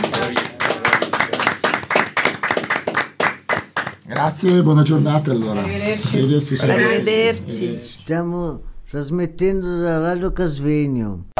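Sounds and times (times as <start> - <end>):
audience applause: 0.0 - 5.4
speech: 4.2 - 11.3.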